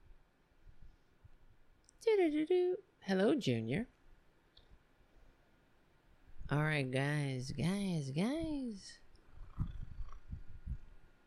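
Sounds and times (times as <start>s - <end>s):
speech: 2.1s - 4.0s, 6.5s - 9.0s
cat purring into the microphone: 9.2s - 10.9s.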